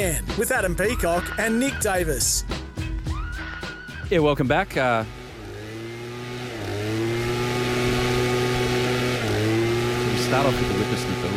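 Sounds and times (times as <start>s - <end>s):
speech: 0.0s - 2.6s, 4.1s - 5.2s, 10.3s - 11.3s
leaf blower engine running: 4.4s - 11.3s.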